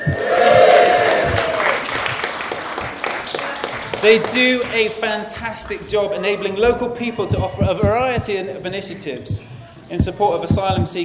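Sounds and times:
audience cheering and applauding: 0.0 - 5.0
speech: 4.0 - 11.0.

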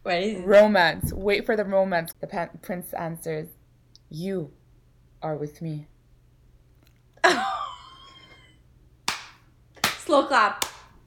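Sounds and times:
speech: 0.1 - 4.6, 5.2 - 5.9, 10.2 - 10.7
slow clap: 9.1 - 11.0.

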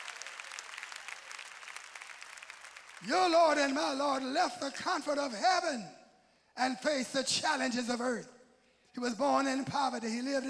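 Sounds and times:
audience clapping hands: 0.0 - 5.3
speech: 3.0 - 6.0, 6.6 - 8.4, 9.0 - 10.4.

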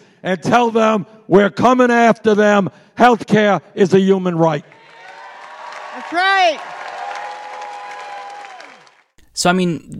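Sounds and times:
speech: 0.2 - 4.8, 6.1 - 6.7, 9.4 - 9.9
large debate audience applauding: 4.6 - 9.1.

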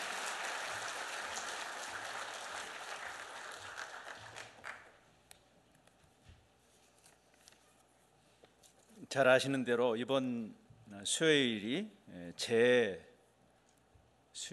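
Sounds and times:
audience applause welcoming a speaker: 0.0 - 5.0
speech: 9.1 - 13.1, 14.4 - 14.5.

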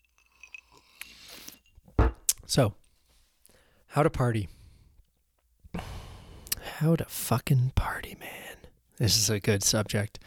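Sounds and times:
ice cubes clinking in a glass of cold coffee: 0.0 - 0.8
speech: 2.5 - 2.8, 3.9 - 4.6, 6.8 - 10.2.

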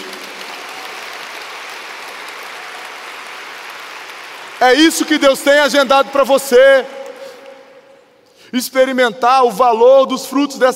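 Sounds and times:
audience applause: 0.0 - 6.1
speech: 4.6 - 7.0, 8.5 - 10.7.

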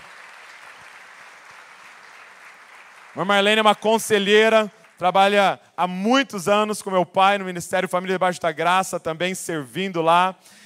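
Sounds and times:
audience applauding: 0.0 - 5.4
speech: 3.2 - 10.6.

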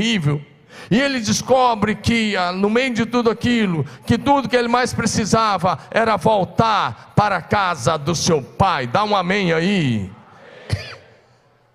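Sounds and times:
speech: 0.0 - 10.2
dry cough: 10.6 - 11.2.

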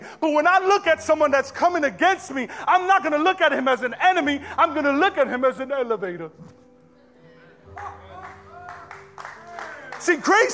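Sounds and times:
speech: 0.2 - 6.6, 10.0 - 10.5
audience clapping: 7.7 - 10.5.

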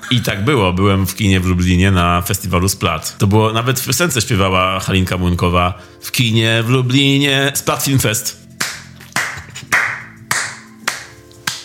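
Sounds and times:
speech: 0.1 - 8.5
applause: 8.6 - 11.6.

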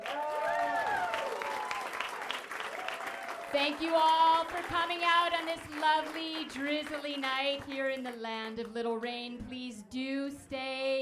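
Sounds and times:
cheering voices: 0.0 - 7.1
audience applause: 0.0 - 7.7
speech: 3.5 - 11.0.

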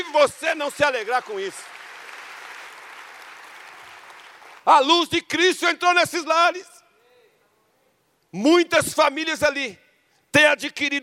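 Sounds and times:
speech: 0.0 - 1.8, 4.7 - 6.7, 8.3 - 11.0
audience applauding: 0.6 - 4.7.

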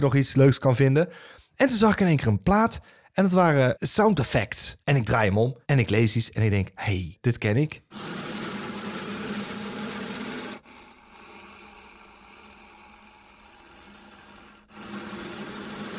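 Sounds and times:
speech: 0.0 - 8.2
heavy mechanical breathing sound effect: 7.9 - 15.9.

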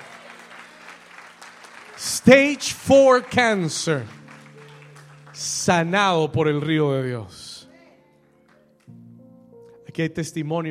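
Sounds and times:
audience applauding: 0.0 - 6.0
speech: 2.0 - 4.2, 5.4 - 7.4, 10.0 - 10.6.

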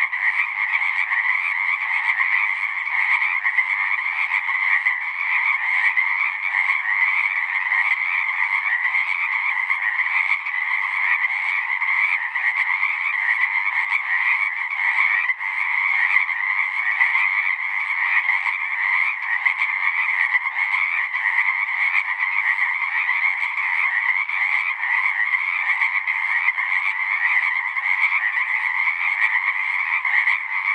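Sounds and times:
Pacific chorus frog chorus croaking: 0.0 - 30.7.

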